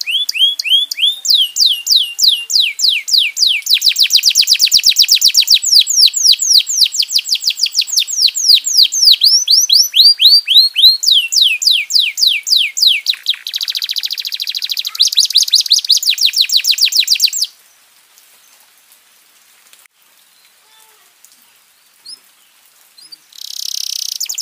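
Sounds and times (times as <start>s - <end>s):
domestic canary song: 0.0s - 18.6s, 20.3s - 24.4s.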